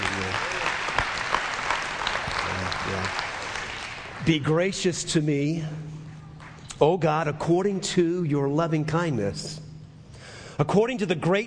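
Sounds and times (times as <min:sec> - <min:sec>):
audience clapping: 0:00.0 - 0:04.6
speech: 0:04.3 - 0:05.9, 0:06.8 - 0:09.6, 0:10.6 - 0:11.4.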